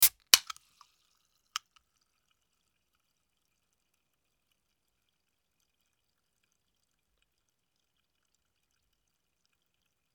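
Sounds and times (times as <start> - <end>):
can opening: 0.0 - 0.6.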